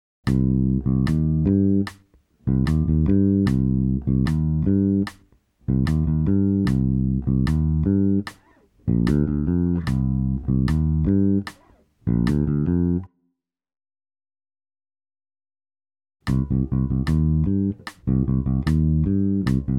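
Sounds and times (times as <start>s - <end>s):
reggae music: 0.3s - 12.6s, 16.3s - 19.7s.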